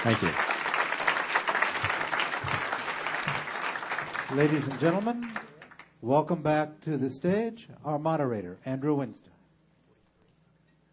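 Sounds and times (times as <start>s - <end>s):
speech: 0.0s - 0.5s, 4.3s - 9.3s
audience clapping: 0.0s - 6.0s.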